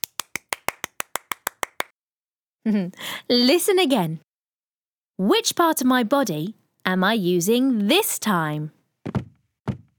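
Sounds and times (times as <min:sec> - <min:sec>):
round of applause, clapping hands: 0:00.0 - 0:01.9
speech: 0:02.6 - 0:04.3, 0:05.2 - 0:08.8.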